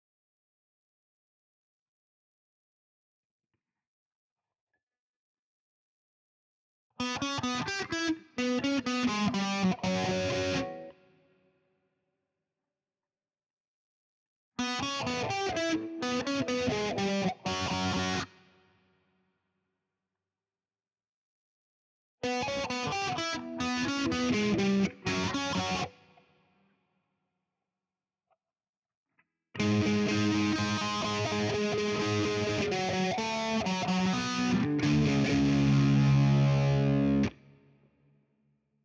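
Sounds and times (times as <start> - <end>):
guitar: 7.0 - 11.4, 14.6 - 18.6, 22.2 - 26.3, 29.6 - 37.9.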